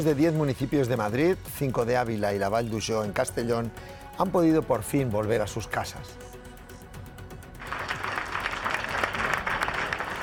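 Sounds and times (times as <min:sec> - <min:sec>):
speech: 0:00.0 - 0:06.4
applause from residents: 0:07.6 - 0:10.2.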